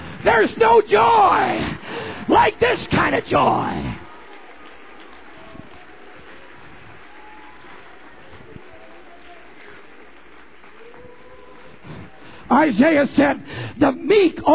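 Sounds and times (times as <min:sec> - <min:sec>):
speech: 0:00.2 - 0:01.7, 0:02.3 - 0:03.9, 0:12.5 - 0:14.5
audience applauding: 0:03.4 - 0:12.4.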